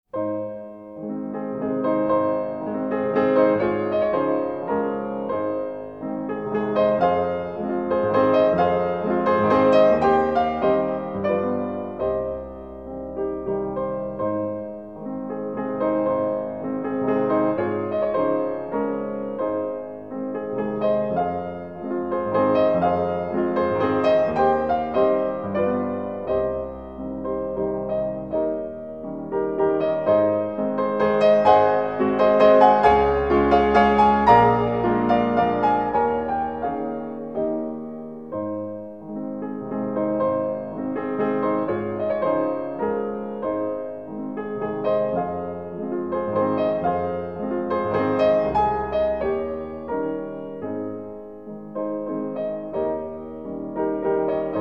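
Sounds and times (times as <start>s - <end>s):
piano waltz: 0.1s - 54.5s.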